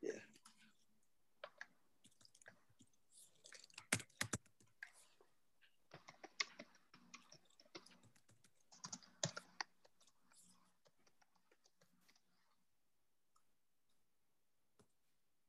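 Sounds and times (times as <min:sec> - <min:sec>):
fingers typing into a chat window on a computer keyboard: 0:01.4 - 0:05.2, 0:05.9 - 0:12.4.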